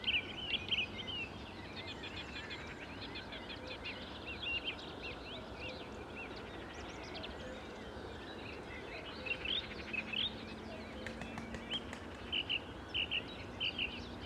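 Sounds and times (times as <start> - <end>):
many birds chirping and whistling in morning countryside: 0.0 - 14.2.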